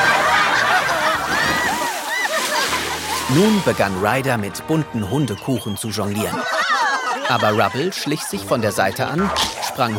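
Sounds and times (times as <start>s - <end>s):
laughter: 0.0s - 4.2s, 5.3s - 9.9s
water jets spraying and splashing: 0.0s - 4.3s
speech: 3.3s - 6.6s, 7.3s - 9.9s.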